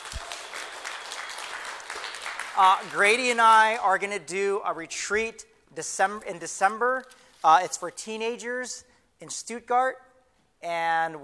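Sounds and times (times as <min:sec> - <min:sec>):
audience round of applause: 0:00.0 - 0:03.8
speech: 0:02.6 - 0:11.2.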